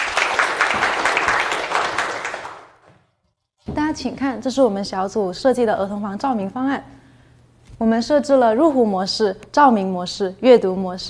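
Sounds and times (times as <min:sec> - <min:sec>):
audience applause: 0:00.0 - 0:02.8
speech: 0:03.9 - 0:07.0, 0:07.8 - 0:11.0.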